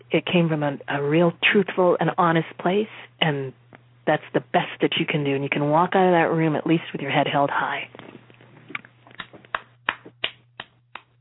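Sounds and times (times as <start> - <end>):
speech: 0.1 - 8.2
one person clapping hands: 9.2 - 11.1.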